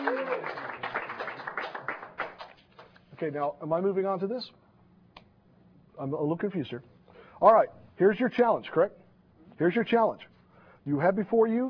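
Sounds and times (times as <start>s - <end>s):
sympathy applause from a small group: 0.0s - 3.0s
speech: 3.2s - 4.6s, 6.0s - 9.0s, 9.6s - 11.6s.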